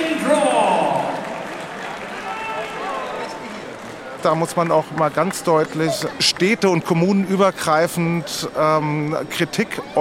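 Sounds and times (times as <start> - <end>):
crowd voices: 0.0 - 9.9
audience clapping: 0.5 - 6.6
speech: 4.2 - 9.9.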